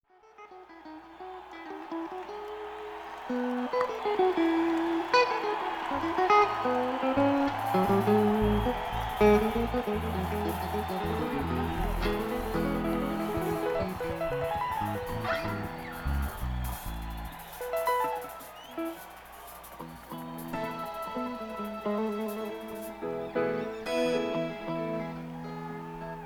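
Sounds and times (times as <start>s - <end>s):
instrument tuning: 4.1s - 19.2s, 19.8s - 24.8s.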